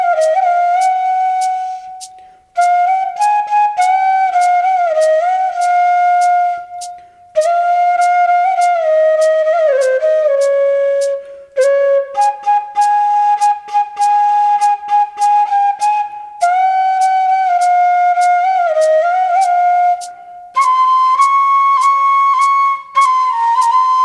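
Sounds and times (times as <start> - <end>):
flute playing a national anthem: 0.0 - 24.0.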